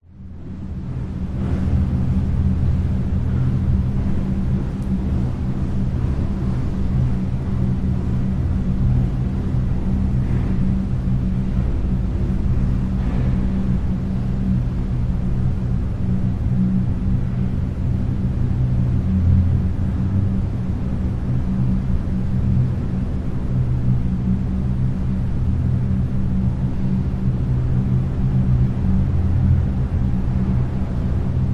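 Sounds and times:
school air filter hum in a staircase: 0.0 - 31.5.

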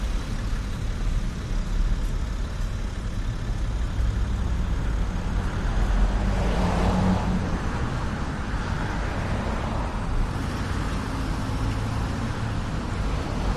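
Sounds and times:
bus: 0.0 - 13.5
cars: 0.0 - 13.5
night traffic hissing and roaring in Vancouver: 0.0 - 13.5.

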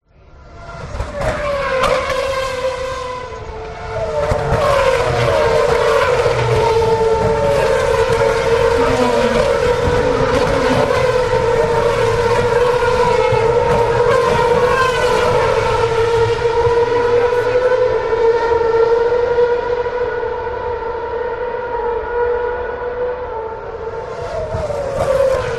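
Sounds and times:
Formula One racing cars passing close: 0.1 - 25.5.

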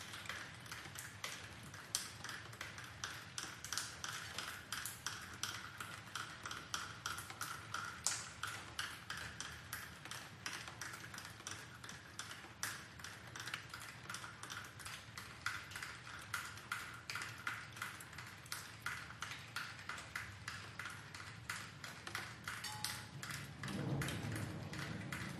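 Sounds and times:
rain dripping: 0.0 - 25.3
distant thunder rumble: 23.1 - 25.3.

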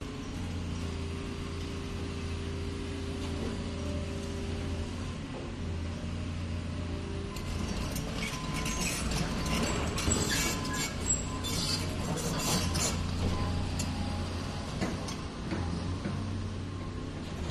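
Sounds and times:
excavators idling and driving at a construction site: 0.0 - 17.4.

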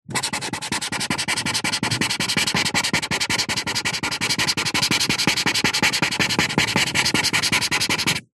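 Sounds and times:
luminous highlighter marker pen colouring in fast on paper: 0.1 - 8.3.

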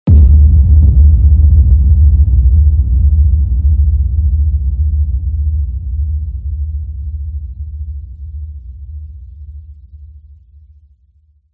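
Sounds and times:
cinematic distorted sub impact hit: 0.1 - 9.2.

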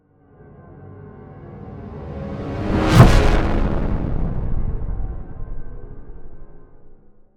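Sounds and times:
distorted swell to impact: 1.7 - 7.1.

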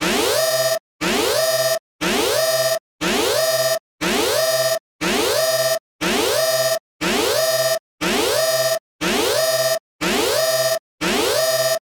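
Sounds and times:
alarms: 0.2 - 11.8.

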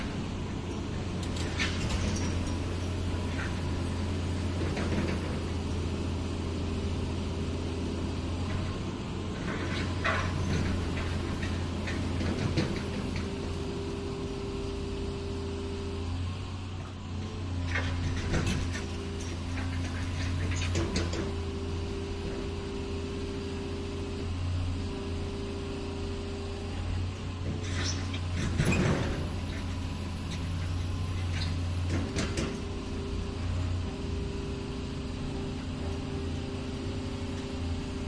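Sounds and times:
excavators idling at a construction site: 0.0 - 38.0.

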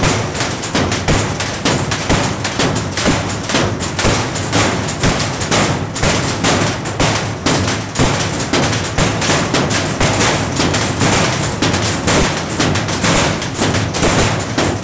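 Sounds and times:
impacts on metal wall barrier: 0.0 - 14.8.

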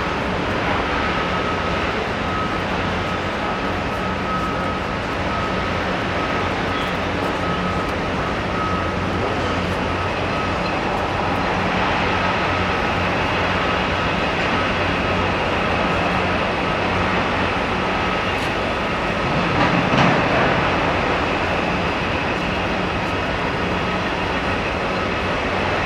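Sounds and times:
large construction site ambience at Ground Zero in NYC: 0.0 - 25.8.

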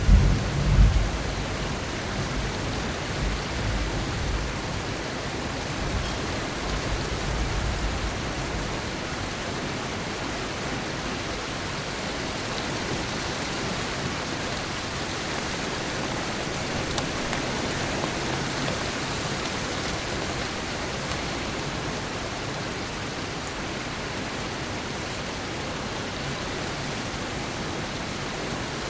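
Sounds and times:
low thunder rumbles: 0.0 - 4.8
rain heard indoors through an open window: 0.0 - 28.8.

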